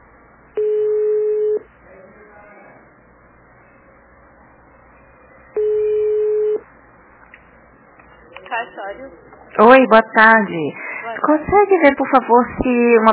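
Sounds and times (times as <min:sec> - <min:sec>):
ringback tone of an unanswered telephone call to a notary office: 0:00.6 - 0:01.6, 0:05.6 - 0:06.6
speech: 0:08.9 - 0:13.1.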